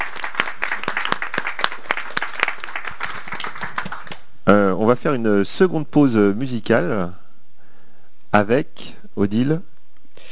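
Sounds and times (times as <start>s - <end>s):
audience applause: 0.0s - 4.2s
speech: 4.5s - 7.2s, 8.4s - 9.7s.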